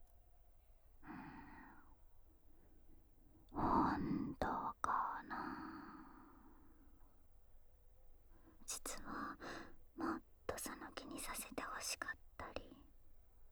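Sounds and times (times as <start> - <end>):
voiceless whispering on stairs: 1.0 - 2.0, 3.5 - 6.3, 8.5 - 12.9.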